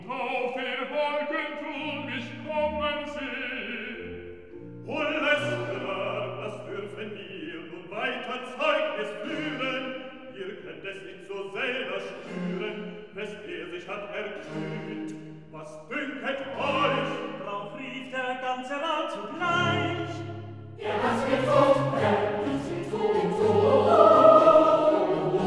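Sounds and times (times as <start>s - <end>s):
recitative singing: 0.0s - 25.4s
choir singing: 5.0s - 17.8s, 19.1s - 25.4s.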